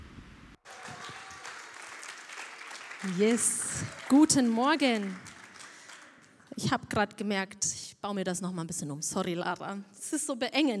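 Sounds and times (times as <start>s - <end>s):
audience applause: 0.6s - 6.5s
speech: 3.0s - 5.3s, 6.6s - 10.7s.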